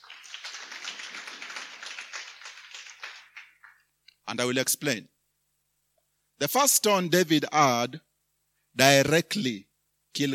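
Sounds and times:
audience clapping: 0.0 - 3.9
speech: 4.3 - 5.2, 6.4 - 8.1, 8.8 - 10.3.

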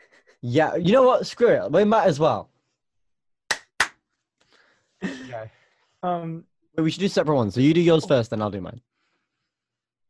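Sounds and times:
speech: 0.4 - 2.5, 5.4 - 8.9
sharp hand claps to sync audio: 3.5 - 4.1.

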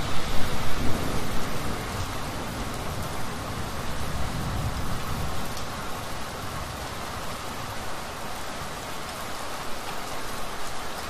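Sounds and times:
thunder rumbling: 0.0 - 5.4
heavy spring rain: 0.0 - 11.0.

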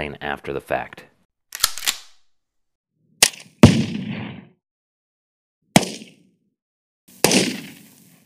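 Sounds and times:
speech: 0.0 - 1.0
gunshots: 3.2 - 4.5, 5.7 - 6.2, 7.1 - 8.0.

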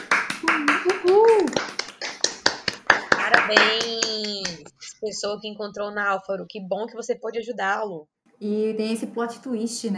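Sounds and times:
applause: 0.0 - 4.6
speech: 3.5 - 4.0, 5.0 - 9.9.

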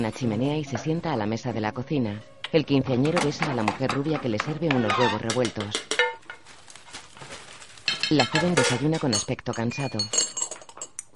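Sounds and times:
speech: 0.0 - 5.9, 8.1 - 10.2
dishes clattering while emptying a dishwasher: 3.0 - 6.5, 7.9 - 11.0.

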